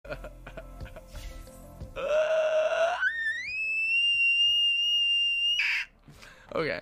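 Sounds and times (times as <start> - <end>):
pterodactyl call: 2.0 - 5.9.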